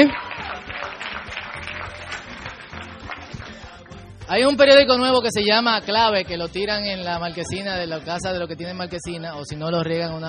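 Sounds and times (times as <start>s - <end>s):
speech: 0.0s - 0.2s, 4.3s - 10.2s
crowd applause: 0.0s - 4.1s.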